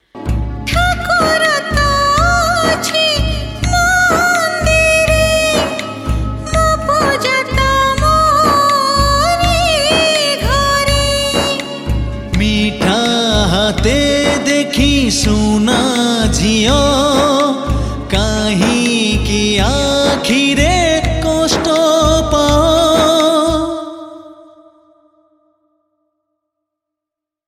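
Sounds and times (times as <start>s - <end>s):
sad version of an Odia song: 0.0s - 25.8s.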